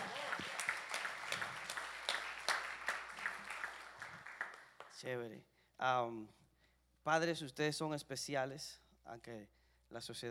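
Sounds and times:
audience applause: 0:00.0 - 0:05.0
speech: 0:05.0 - 0:06.4, 0:07.0 - 0:10.2.

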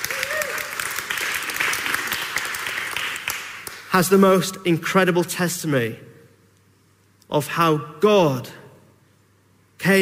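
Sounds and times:
audience applause welcoming two guests: 0:00.0 - 0:03.8
speech: 0:04.0 - 0:06.1, 0:07.3 - 0:08.6, 0:09.8 - 0:09.9.

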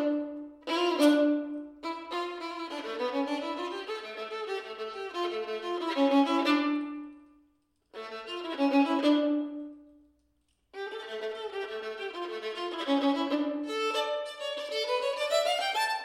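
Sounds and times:
solo violin: 0:00.0 - 0:10.1, 0:10.7 - 0:16.0.

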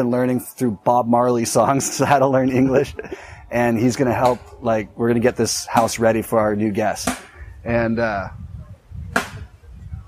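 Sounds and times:
speech: 0:00.0 - 0:08.4
laughter: 0:01.4 - 0:04.4
man chopping wood with an axe across the street: 0:07.0 - 0:07.4.

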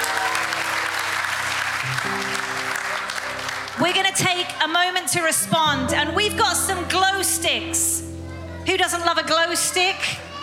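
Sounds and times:
audience applause: 0:00.0 - 0:04.8
speech: 0:01.9 - 0:02.7, 0:03.8 - 0:08.1, 0:08.7 - 0:10.3.

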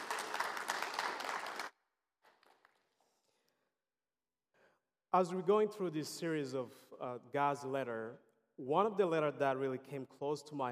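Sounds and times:
round of applause: 0:00.0 - 0:03.0
speech: 0:05.1 - 0:10.6.

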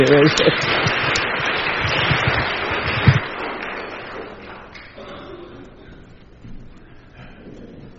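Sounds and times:
audience applause: 0:00.0 - 0:05.3.

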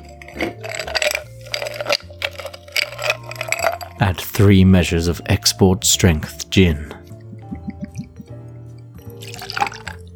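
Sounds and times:
ice going into a cocktail shaker: 0:00.0 - 0:04.2, 0:09.1 - 0:10.1
speech: 0:04.0 - 0:07.0.

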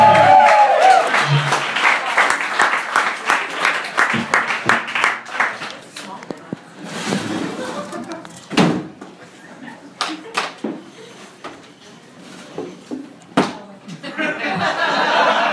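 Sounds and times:
audience applause welcoming a guest: 0:00.0 - 0:06.0
laughter: 0:07.4 - 0:08.5, 0:09.1 - 0:11.4, 0:14.0 - 0:15.5.

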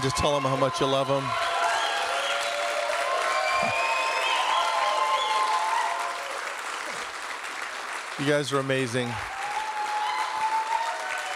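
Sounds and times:
speech: 0:00.0 - 0:01.5, 0:08.2 - 0:09.3
church audience shouts and whoops: 0:00.0 - 0:06.6, 0:09.2 - 0:11.3
church audience clapping: 0:00.0 - 0:11.3.

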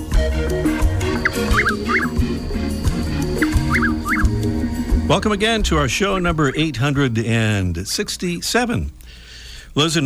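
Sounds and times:
Chuck-will's-widow call: 0:00.0 - 0:06.2
speech: 0:05.1 - 0:09.2, 0:09.8 - 0:10.0.

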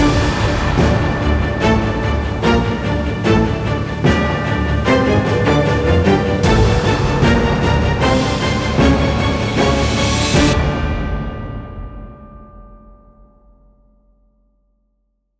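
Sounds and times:
orchestra playing: 0:00.0 - 0:11.3.

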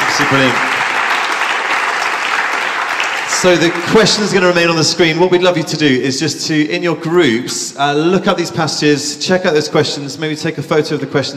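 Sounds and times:
audience applause: 0:00.0 - 0:04.6
speech: 0:00.3 - 0:00.7, 0:03.4 - 0:11.3.

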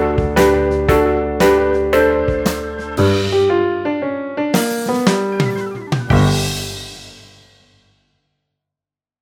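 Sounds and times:
Mixolydian shuffle music: 0:00.2 - 0:03.5, 0:04.6 - 0:06.9.

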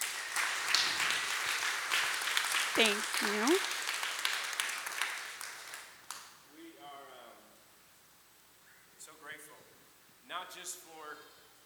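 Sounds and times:
audience round of applause: 0:00.0 - 0:05.9
speech: 0:02.8 - 0:03.8.

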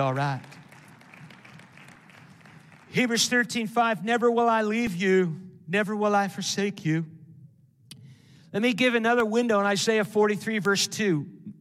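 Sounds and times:
speech: 0:00.0 - 0:00.6, 0:02.9 - 0:07.2, 0:08.5 - 0:11.5
audience clapping in praise: 0:00.0 - 0:03.6.

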